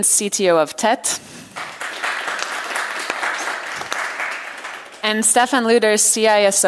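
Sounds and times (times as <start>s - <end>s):
speech: 0.0s - 1.7s, 5.0s - 6.6s
audience applause: 1.6s - 5.1s.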